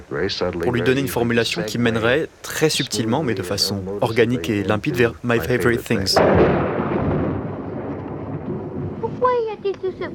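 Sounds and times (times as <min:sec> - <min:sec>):
speech: 0:00.1 - 0:06.6
thunder rumbling: 0:06.1 - 0:10.1.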